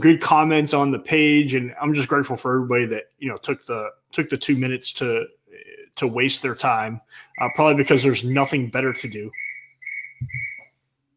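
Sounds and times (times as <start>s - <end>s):
speech: 0.0s - 5.4s, 6.0s - 9.5s, 10.2s - 10.5s
cricket chirping: 7.4s - 10.8s.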